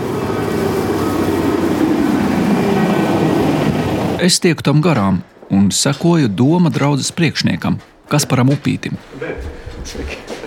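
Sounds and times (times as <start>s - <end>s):
cargo truck engine idling: 0.0s - 4.2s
speech: 4.2s - 10.4s.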